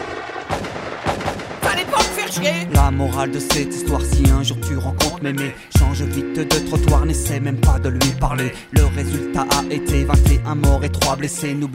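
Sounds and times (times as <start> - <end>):
gunshot effects in a song: 0.0 - 2.3
dense musical backing: 1.6 - 11.7
speech: 2.3 - 11.7.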